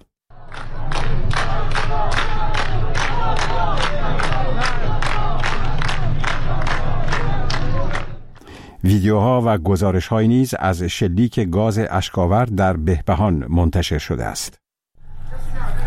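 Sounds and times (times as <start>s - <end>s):
large protest crowd chanting slogans: 0.4s - 8.2s
speech: 8.8s - 14.6s.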